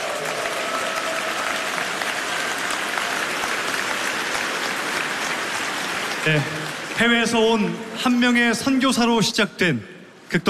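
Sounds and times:
audience applause: 0.0s - 7.6s
speech: 6.2s - 10.4s.

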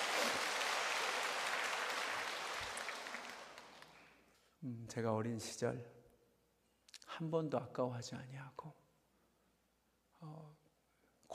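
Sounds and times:
audience applause: 0.0s - 4.2s
speech: 4.6s - 6.0s, 7.2s - 8.8s.

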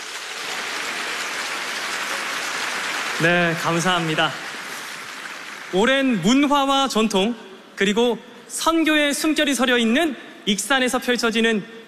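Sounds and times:
audience applause: 0.0s - 6.5s
speech: 3.2s - 4.4s, 5.7s - 11.8s.

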